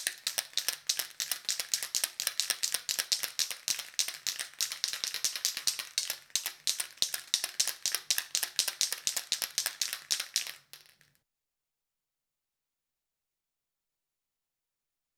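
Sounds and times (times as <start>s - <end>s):
can of spray paint shaken: 0.0s - 11.2s.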